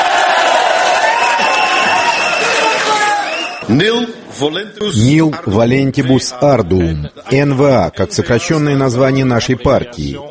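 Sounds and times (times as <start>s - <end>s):
large crowd of supporters cheering and shouting: 0.0s - 3.7s
speech: 3.7s - 10.2s.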